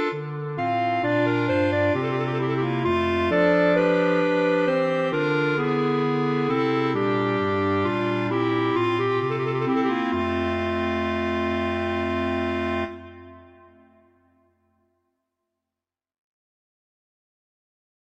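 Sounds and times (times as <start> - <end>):
clarinet quartet playing cantabile winds: 0.0 - 13.9.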